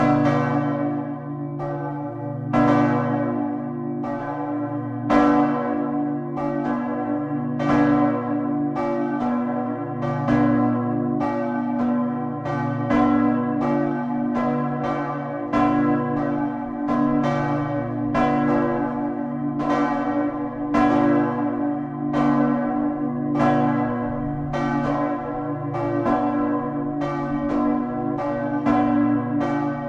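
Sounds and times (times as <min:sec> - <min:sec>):
church bells of St. Petri Kirche in Westerstede ringing: 0:00.0 - 0:29.8.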